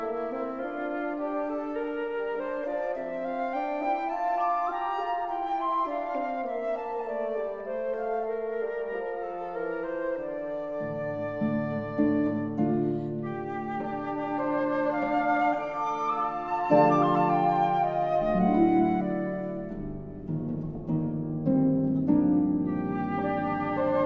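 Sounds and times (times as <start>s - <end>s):
bassoon music: 0.0s - 24.0s.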